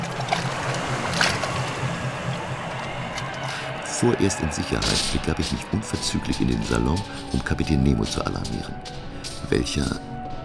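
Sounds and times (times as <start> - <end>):
rowing boat oars splashing in water: 0.0 - 3.4
speech: 4.0 - 10.1.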